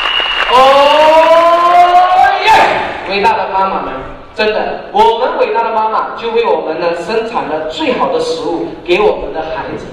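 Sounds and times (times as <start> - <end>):
audience applause at a product presentation seminar: 0.0 - 0.9
voice ringing over the applause: 0.5 - 2.8
speech: 3.1 - 9.9.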